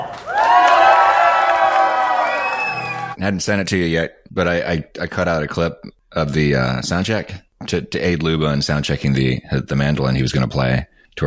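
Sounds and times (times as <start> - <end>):
audience applause: 0.0 - 3.2
speech: 3.2 - 11.2.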